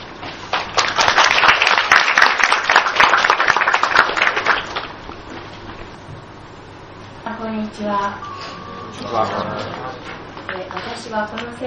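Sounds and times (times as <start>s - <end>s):
audience applause welcoming a speaker: 0.5s - 5.0s
speech: 7.7s - 8.3s, 9.0s - 11.6s.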